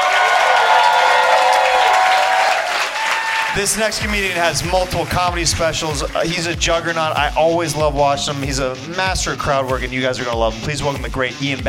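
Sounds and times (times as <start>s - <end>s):
audience applauding and cheering: 0.0s - 7.4s
speech: 3.6s - 11.6s.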